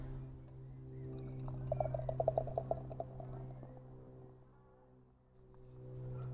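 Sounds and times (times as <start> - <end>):
beer pouring into a glass: 1.2 - 3.6.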